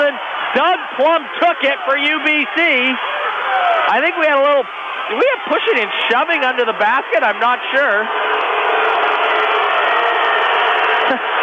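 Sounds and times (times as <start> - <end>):
basketball crowd protesting a referee call: 0.0 - 11.4
speech: 0.5 - 8.3.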